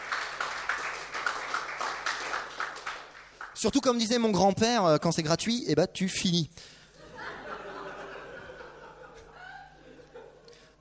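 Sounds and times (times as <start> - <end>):
audience applause: 0.0 - 3.6
speech: 3.6 - 6.8
laughter: 6.9 - 10.8.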